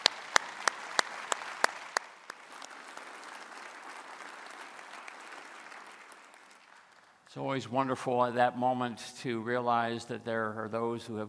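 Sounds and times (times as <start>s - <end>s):
audience round of applause: 0.0s - 7.3s
speech: 7.3s - 11.2s.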